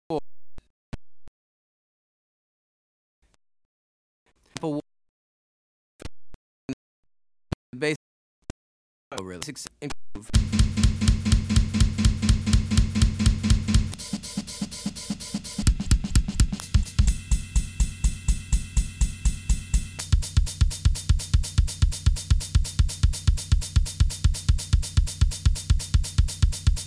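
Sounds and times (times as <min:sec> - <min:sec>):
Afro-Cuban drum groove: 0:10.3 - 0:26.8
Afro-Cuban bass groove: 0:10.4 - 0:14.1, 0:15.4 - 0:25.2.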